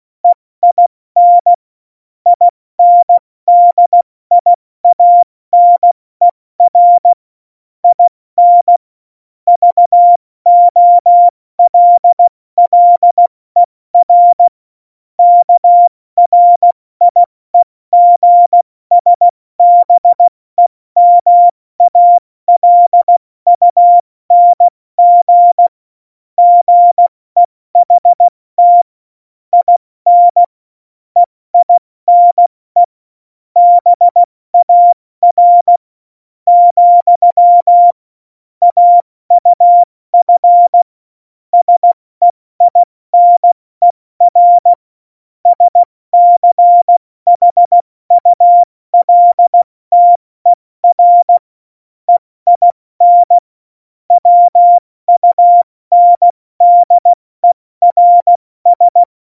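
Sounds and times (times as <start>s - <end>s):
CW Morse code beeps: 0.6s - 1.6s, 2.3s - 6.0s, 6.6s - 7.1s, 7.9s - 8.8s, 9.5s - 13.2s, 14.0s - 14.5s, 15.2s - 20.3s, 21.0s - 25.7s, 26.4s - 28.9s, 29.5s - 30.5s, 31.2s - 32.9s, 33.6s - 35.8s, 36.5s - 38.0s, 38.6s - 40.9s, 41.5s - 44.8s, 45.4s - 51.4s, 52.1s - 53.4s, 54.1s - 59.1s.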